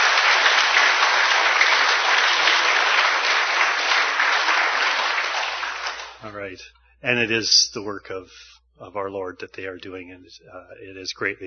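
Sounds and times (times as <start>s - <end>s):
audience applause: 0.0s - 6.2s
speech: 6.4s - 11.4s.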